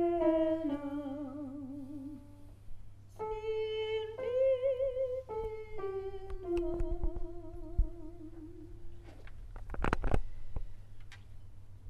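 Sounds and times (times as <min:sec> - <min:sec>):
alto voice singing a requiem movement: 0:00.0 - 0:02.5, 0:03.2 - 0:08.8.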